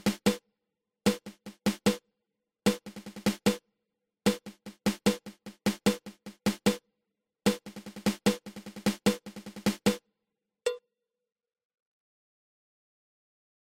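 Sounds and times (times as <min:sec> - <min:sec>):
six stroke drum roll: 0:00.0 - 0:00.4, 0:01.1 - 0:02.0, 0:02.7 - 0:03.6, 0:04.3 - 0:06.8, 0:07.5 - 0:10.0.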